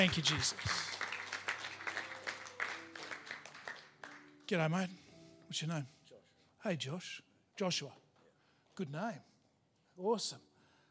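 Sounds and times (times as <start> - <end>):
speech: 0.0 - 1.0, 4.5 - 6.0, 6.6 - 8.0, 8.8 - 9.3, 10.0 - 10.5
audience applauding: 0.0 - 4.5.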